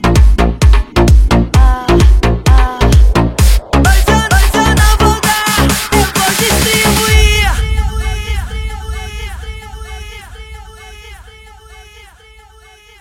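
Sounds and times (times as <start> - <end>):
electro funk music: 0.0 - 9.2.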